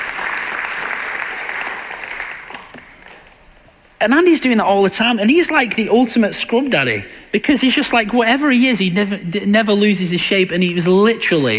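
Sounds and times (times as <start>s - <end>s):
audience applause: 0.0s - 3.4s
speech: 4.0s - 11.5s.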